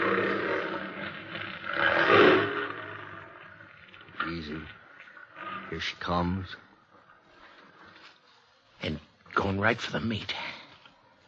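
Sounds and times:
big wild cat roaring: 0.0s - 6.1s
speech: 5.8s - 6.7s, 8.8s - 10.4s.

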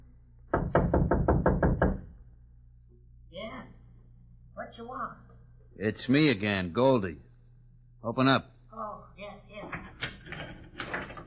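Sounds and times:
knocking on a door: 0.5s - 2.1s
speech: 4.7s - 7.3s, 8.0s - 9.8s.

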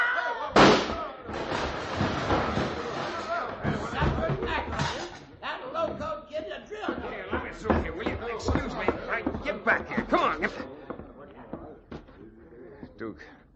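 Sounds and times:
gunshot sound effect in a Western radio drama: 0.6s - 3.0s
voices talking: 2.5s - 13.4s.

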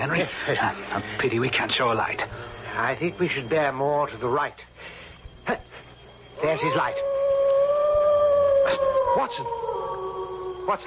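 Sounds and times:
speech: 0.0s - 5.8s, 6.4s - 7.1s, 8.7s - 9.6s, 10.7s - 10.8s
hound howling on the moor: 6.3s - 10.8s.

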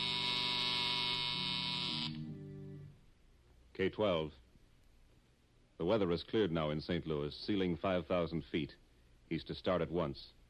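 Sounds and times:
loud electric buzzer droning: 0.0s - 3.0s
low shifting hum: 2.0s - 3.1s
speech: 3.8s - 4.4s, 5.8s - 10.4s.

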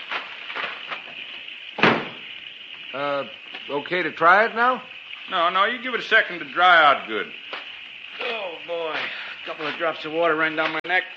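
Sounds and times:
car hood slammed shut: 1.8s - 2.2s
speech: 3.0s - 7.4s, 9.6s - 11.1s.

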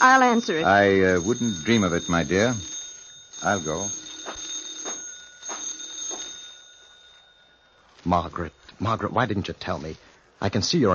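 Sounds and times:
speech: 0.0s - 2.7s, 3.4s - 4.0s, 8.1s - 10.9s
telephone ringing: 0.0s - 9.2s.

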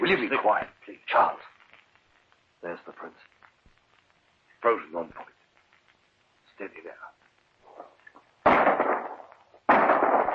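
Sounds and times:
speech: 0.1s - 1.5s, 2.6s - 3.3s, 4.6s - 5.3s, 6.6s - 7.1s
shotgun blasts at a bird: 8.4s - 10.3s.

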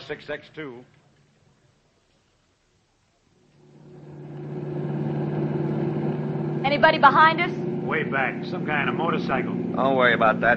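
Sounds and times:
speech: 0.1s - 1.0s, 6.7s - 10.5s
car engine speeding down road: 3.4s - 10.5s.

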